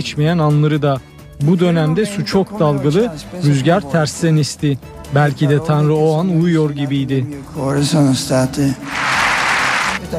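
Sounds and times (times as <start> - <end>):
speech: 0.0 - 9.2
crowd applause during papal speech: 8.8 - 10.0.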